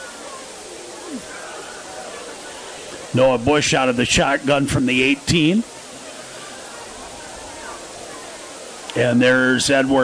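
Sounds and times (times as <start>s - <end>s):
rain falling on a football field: 0.0s - 10.0s
speech: 3.1s - 5.7s, 9.0s - 10.0s.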